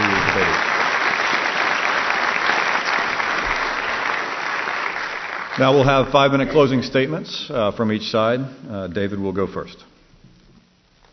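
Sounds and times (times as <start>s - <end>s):
audience applause: 0.0s - 6.9s
speech: 5.6s - 9.9s.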